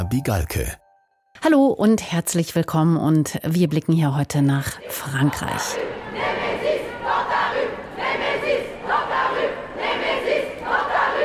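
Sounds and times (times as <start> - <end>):
speech: 0.0 - 0.8, 1.4 - 6.3
protest crowd chanting a slogan at a French demonstration: 4.7 - 11.2.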